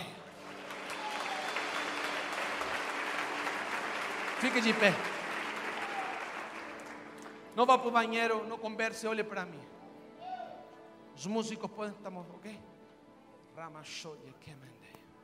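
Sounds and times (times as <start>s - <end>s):
loud audience applause: 0.0s - 7.6s
speech: 4.4s - 5.1s, 7.6s - 9.8s, 11.2s - 12.7s, 13.6s - 15.0s.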